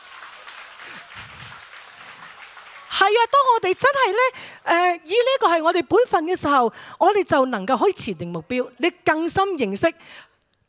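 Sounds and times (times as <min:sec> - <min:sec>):
church congregation applauding for Jesus: 0:00.0 - 0:03.5
speech: 0:02.9 - 0:10.6.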